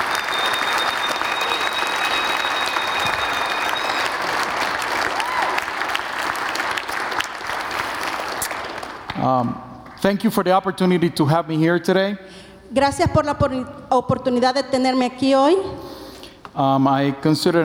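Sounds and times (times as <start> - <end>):
thin high tone: 0.0 - 5.8
audience applauding: 0.0 - 10.2
speech: 9.3 - 15.8, 16.6 - 17.6.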